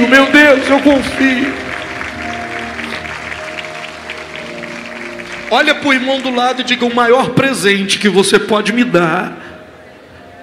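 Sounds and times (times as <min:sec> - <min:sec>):
speech: 0:00.0 - 0:01.6, 0:05.5 - 0:09.5
audience applauding: 0:00.0 - 0:07.2.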